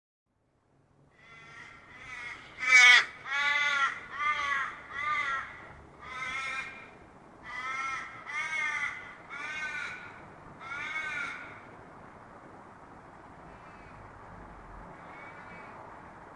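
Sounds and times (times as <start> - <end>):
raven cawing: 1.1 - 11.7, 13.4 - 14.1, 14.9 - 16.1.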